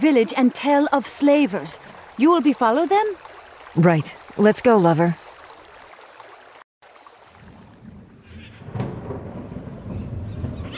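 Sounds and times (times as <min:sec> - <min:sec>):
speech: 0:00.0 - 0:05.2
low rolling thunder of an approaching thunderstorm: 0:07.4 - 0:10.7.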